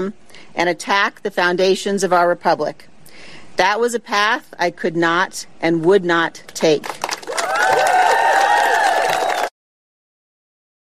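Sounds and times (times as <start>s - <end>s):
speech: 0.0s - 7.0s
audience applause and cheering in a standing ovation: 7.0s - 9.6s.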